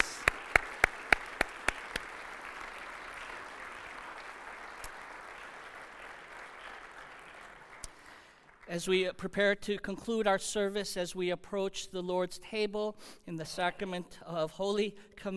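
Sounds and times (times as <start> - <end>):
audience applause: 0.0 - 8.7
sharp evenly spaced claps: 0.0 - 8.7
speech: 8.7 - 15.3.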